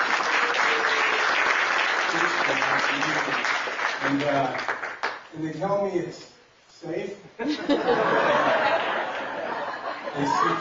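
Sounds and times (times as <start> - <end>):
audience applause: 0.0 - 5.2
speech: 2.9 - 9.0, 10.2 - 10.5
laughter: 7.4 - 10.5.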